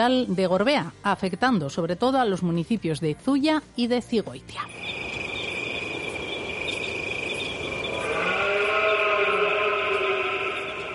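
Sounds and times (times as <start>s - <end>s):
speech: 0.0s - 5.0s
hiss: 4.7s - 10.9s
thin constant high-pitched insect-like whine: 4.7s - 10.9s
red deer stag bellowing during the rut: 7.9s - 10.9s.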